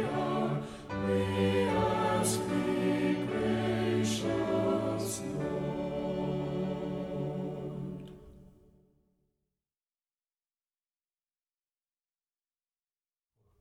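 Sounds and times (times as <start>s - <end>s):
hymn with vocals and instruments: 0.0s - 8.5s.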